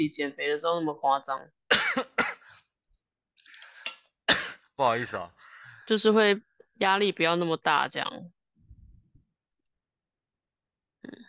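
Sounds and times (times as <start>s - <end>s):
speech: 0.0s - 2.1s, 4.8s - 8.4s
person coughing after choking on a sip of water: 1.7s - 2.5s, 4.3s - 4.7s.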